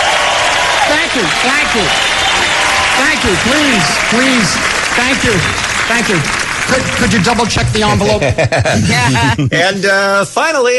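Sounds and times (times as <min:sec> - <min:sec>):
crowd applauding in a standing ovation: 0:00.0 - 0:09.3
speech: 0:01.2 - 0:02.2, 0:03.0 - 0:10.7
laughter: 0:03.0 - 0:09.9.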